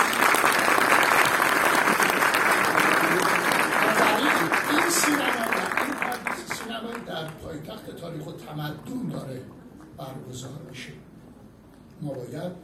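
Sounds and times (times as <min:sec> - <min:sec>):
audience applause at a ceremony announcing Hamadan as Iran's capital of history and civilization: 0:00.0 - 0:07.4
speech: 0:10.1 - 0:11.1, 0:12.0 - 0:12.6.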